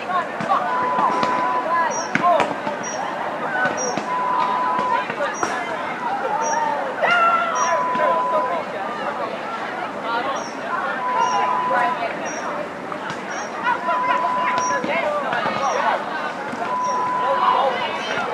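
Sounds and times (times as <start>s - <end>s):
playground sound: 0.0s - 18.3s.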